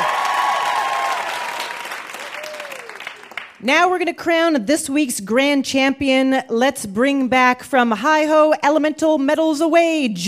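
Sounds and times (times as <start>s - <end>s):
audience applause: 0.0s - 3.6s
speech: 3.6s - 10.2s.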